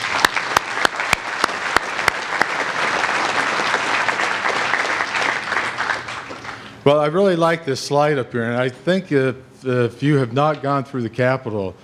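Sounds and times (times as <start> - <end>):
audience applause: 0.0 - 6.8
speech: 6.9 - 11.8.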